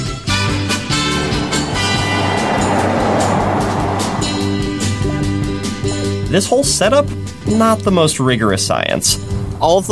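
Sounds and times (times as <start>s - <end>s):
car engine, road and wind rumble with an insect-collecting net on the windshield: 0.1s - 6.1s
speech: 6.4s - 9.9s.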